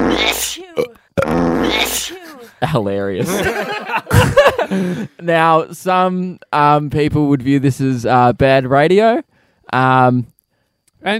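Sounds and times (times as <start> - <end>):
voice imitating fart: 0.0 - 2.2
voice imitating sneeze: 0.0 - 2.6
speech: 0.2 - 10.3
laughter: 2.0 - 2.6, 3.2 - 5.2.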